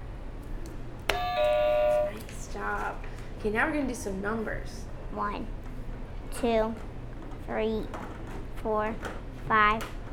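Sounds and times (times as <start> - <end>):
buzzer: 1.1 - 2.2
speech: 2.9 - 5.6, 6.4 - 6.9, 7.5 - 10.0.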